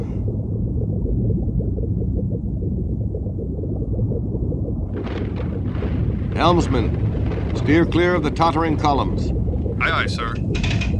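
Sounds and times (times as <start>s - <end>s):
underwater volcano erupting: 0.0s - 10.9s
speech: 6.4s - 7.0s, 7.6s - 10.8s.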